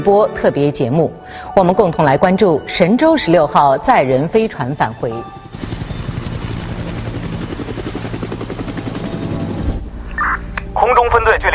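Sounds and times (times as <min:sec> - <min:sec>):
speech: 0:00.0 - 0:05.8
helicopter rotor thumping: 0:04.4 - 0:10.8.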